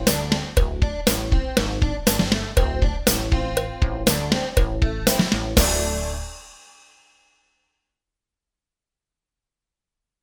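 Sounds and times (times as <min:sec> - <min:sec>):
syncopated etude: 0:00.0 - 0:06.4.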